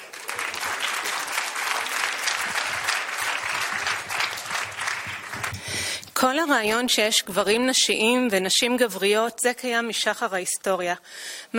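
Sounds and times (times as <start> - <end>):
audience applause: 0.0 - 6.2
speech: 6.2 - 11.5.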